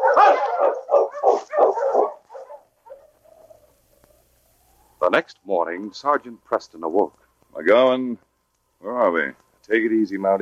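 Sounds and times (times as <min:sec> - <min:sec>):
dog barking: 0:00.0 - 0:03.8
speech: 0:05.1 - 0:08.3, 0:08.9 - 0:10.4.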